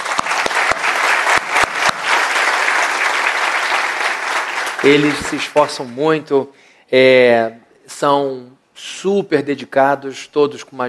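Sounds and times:
audience clapping for worship band: 0:00.0 - 0:05.9
speech: 0:04.8 - 0:10.8.

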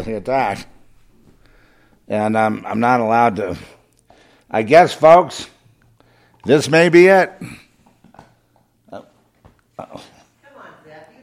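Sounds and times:
speech: 0:00.0 - 0:00.8, 0:02.1 - 0:03.8, 0:04.5 - 0:05.5, 0:06.4 - 0:07.6
dog chewing loudly: 0:07.7 - 0:09.4.

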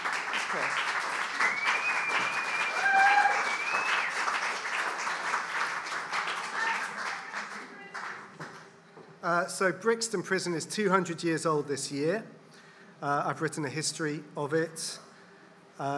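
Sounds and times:
audience applause: 0:00.0 - 0:08.4
faint whistles: 0:01.4 - 0:04.3
speech: 0:09.5 - 0:12.4, 0:13.0 - 0:15.0, 0:15.8 - 0:15.9.

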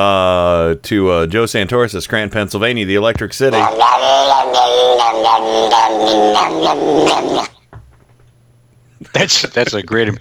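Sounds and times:
speech: 0:00.0 - 0:07.5, 0:09.1 - 0:10.1
cat growling while being brushed: 0:03.5 - 0:07.6.

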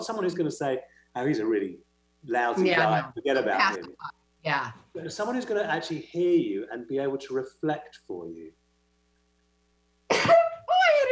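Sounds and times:
laughter: 0:00.0 - 0:01.7, 0:02.3 - 0:03.9, 0:05.0 - 0:07.8
speech: 0:00.0 - 0:08.6
person sneezing: 0:02.4 - 0:03.8, 0:10.1 - 0:10.6.

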